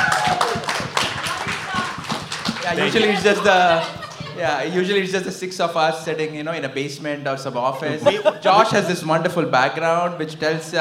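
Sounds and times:
live audience clapping and cheering: 0:00.0 - 0:04.7
laughter: 0:01.2 - 0:05.3, 0:07.8 - 0:09.1
speech: 0:02.7 - 0:10.8.

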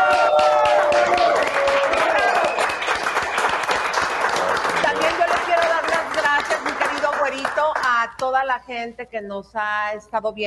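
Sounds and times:
faint cheering: 0:00.0 - 0:02.8
audience applause: 0:00.0 - 0:07.9
speech: 0:08.7 - 0:10.4.

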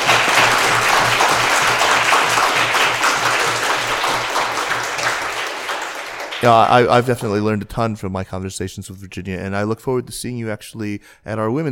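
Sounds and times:
audience applause: 0:00.0 - 0:07.2
speech: 0:06.4 - 0:11.7.

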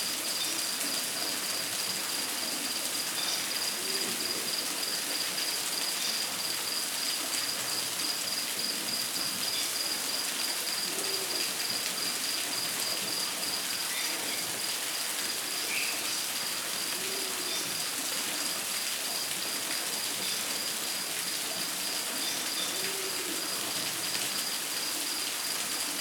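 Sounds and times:
rainforest rain or dripping hiss: 0:00.0 - 0:26.0.

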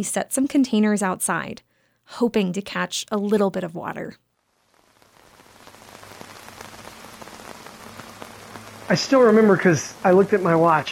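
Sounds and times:
speech: 0:00.0 - 0:04.2, 0:08.9 - 0:10.8
heavy rain at night: 0:05.0 - 0:10.8.

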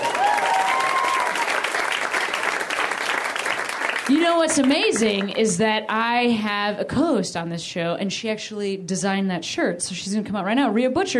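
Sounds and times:
audience applause: 0:00.0 - 0:05.4
speech: 0:04.3 - 0:11.1.

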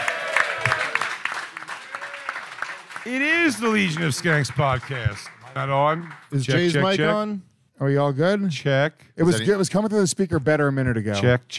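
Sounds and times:
audience clapping hands: 0:00.0 - 0:07.0
speech: 0:03.1 - 0:11.5.

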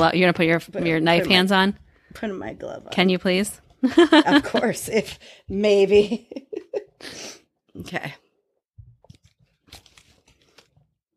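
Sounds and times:
speech: 0:00.0 - 0:08.2
paper being shredded: 0:09.6 - 0:10.8.

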